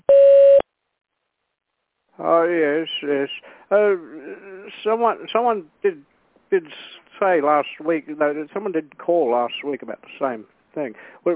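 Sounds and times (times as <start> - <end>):
phone system beep before recording a message: 0.1 - 0.6
speech: 2.2 - 11.3.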